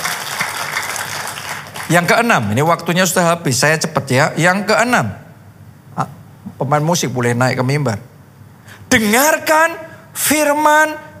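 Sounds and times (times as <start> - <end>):
audience applause: 0.0 - 2.1
speech: 1.9 - 5.2, 6.0 - 8.1, 8.9 - 11.1.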